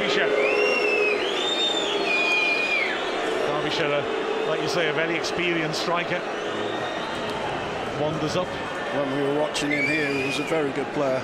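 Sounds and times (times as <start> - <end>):
football fans whistling at a player: 0.0 - 10.9
speech: 3.8 - 6.7, 8.0 - 11.2.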